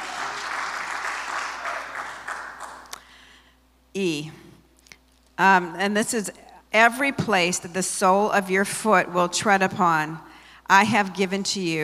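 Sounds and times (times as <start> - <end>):
crowd applause: 0.0 - 3.0
speech: 4.0 - 4.4, 5.4 - 11.8.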